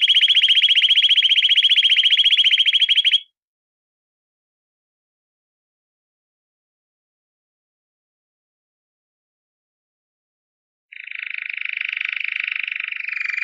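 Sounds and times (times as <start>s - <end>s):
canary song of buzzy trills and whistled notes: 0.0s - 3.2s, 10.9s - 13.4s.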